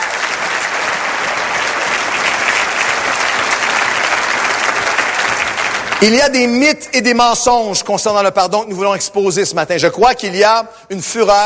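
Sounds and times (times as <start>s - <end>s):
large audience applause: 0.0s - 6.6s
speech: 6.0s - 11.4s.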